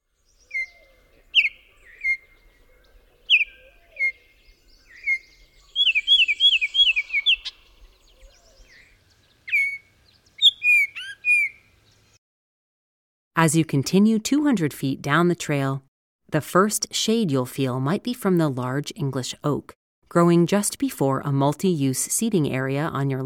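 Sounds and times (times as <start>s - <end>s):
Baltimore oriole song of short loud clear whistled notes: 0.0s - 12.2s
speech: 13.4s - 23.2s.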